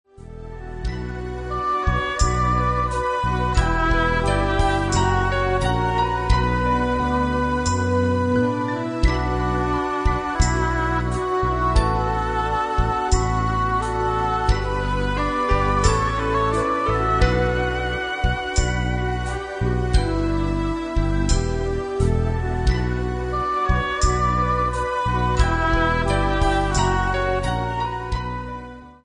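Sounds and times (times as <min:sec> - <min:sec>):
interlude music playback: 0:00.1 - 0:29.0.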